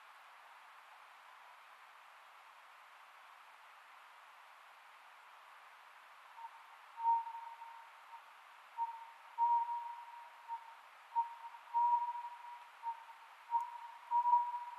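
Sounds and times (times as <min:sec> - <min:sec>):
faint hiss: 0:00.0 - 0:14.7
Oriental scops owl hooting: 0:06.4 - 0:14.7.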